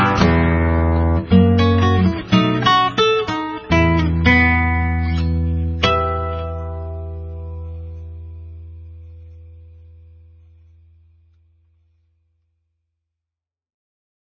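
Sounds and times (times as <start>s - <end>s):
typical choro on solo guitar: 0.0s - 10.6s.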